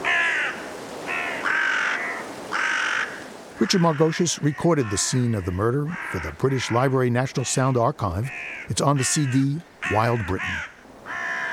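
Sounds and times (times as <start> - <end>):
carrion crows cawing: 0.0 - 7.0, 8.3 - 11.5
blustery rushing wind: 0.0 - 11.5
speech: 3.6 - 10.7.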